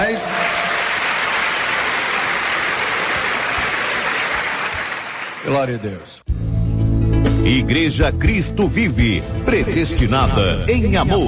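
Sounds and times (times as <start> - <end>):
speech: 0.0 - 0.6, 5.4 - 6.4, 7.4 - 11.2
church audience applause: 0.0 - 6.2.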